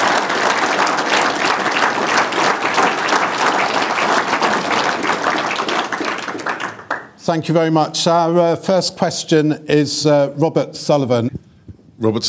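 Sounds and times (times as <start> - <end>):
large crowd clapping at the Great Yorkshire Showground: 0.0 - 7.5
speech: 7.3 - 11.4, 12.0 - 12.2.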